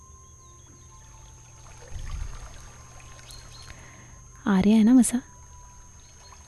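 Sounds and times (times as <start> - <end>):
water flowing in a small river: 1.0 - 3.9, 5.4 - 6.4
speech: 4.5 - 5.3.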